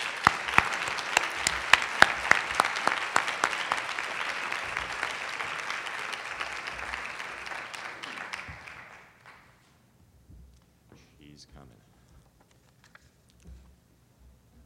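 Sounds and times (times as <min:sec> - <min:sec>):
audience clapping: 0:00.0 - 0:09.6.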